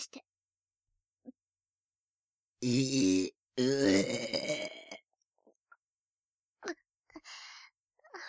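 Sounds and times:
loud burp: 2.6s - 5.0s.

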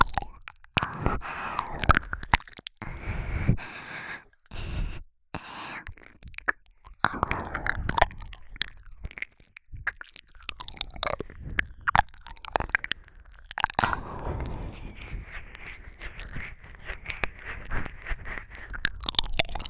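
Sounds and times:
ear licking: 0.0s - 19.6s.

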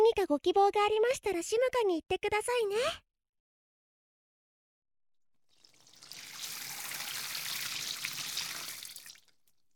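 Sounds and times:
speech: 0.1s - 3.0s
water pouring over a person's head during a hair wash: 5.6s - 9.5s.

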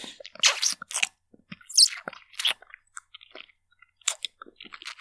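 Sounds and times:
ASMR kissing sounds: 0.4s - 1.0s, 1.6s - 2.6s.

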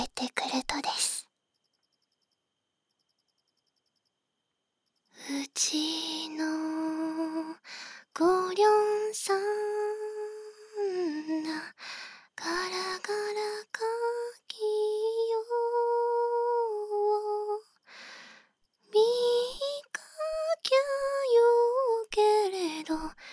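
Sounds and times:
person singing a lullaby for co-sleeping, ASMR: 5.2s - 11.8s, 12.4s - 17.8s, 18.9s - 23.3s.

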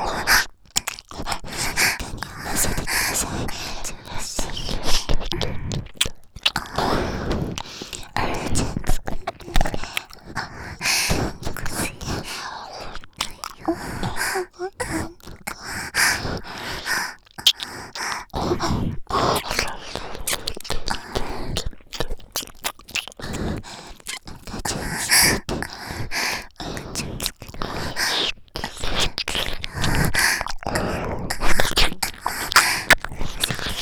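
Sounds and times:
ear licking: 0.1s - 33.8s
person moaning: 13.6s - 15.2s.

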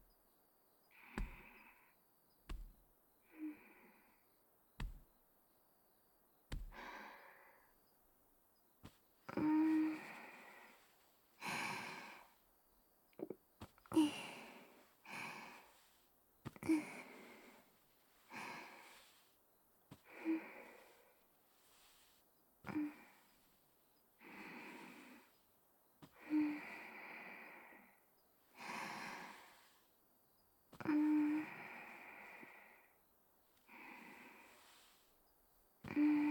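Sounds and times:
gentle back and shoulder massage on a futon: 1.0s - 1.8s, 2.4s - 2.9s, 4.8s - 5.3s, 6.4s - 7.2s, 8.7s - 12.5s, 13.6s - 27.6s, 28.4s - 36.3s.

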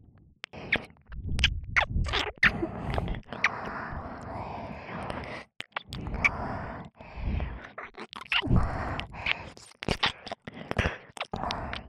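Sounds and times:
ear licking sounds: 0.4s - 3.5s, 5.1s - 6.3s, 7.6s - 11.8s.

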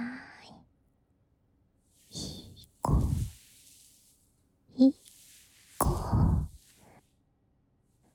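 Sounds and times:
hands giving a baby a full-body massage: 2.0s - 7.1s.

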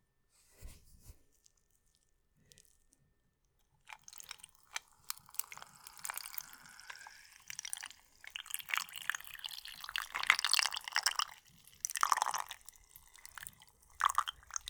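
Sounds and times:
ice dropping into a glass: 3.9s - 14.6s
urine pouring into a glass: 3.9s - 14.6s.

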